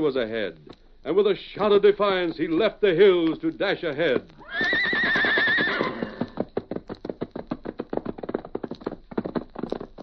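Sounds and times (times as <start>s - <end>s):
speech: 0.0s - 5.0s
horse hoofbeats clopping: 0.2s - 10.0s
horse whinnying: 4.4s - 6.6s.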